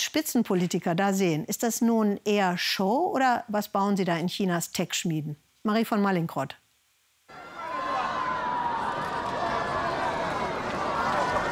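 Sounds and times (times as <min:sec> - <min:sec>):
speech: 0:00.1 - 0:06.6
crowd cheering for a robot runner at a robot marathon in Beijing: 0:07.3 - 0:11.5.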